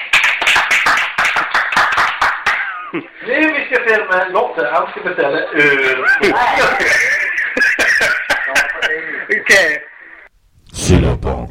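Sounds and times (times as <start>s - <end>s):
applause: 0.0s - 2.8s
speech: 2.9s - 7.2s, 8.0s - 9.9s, 10.9s - 11.4s
laughter: 5.5s - 9.7s.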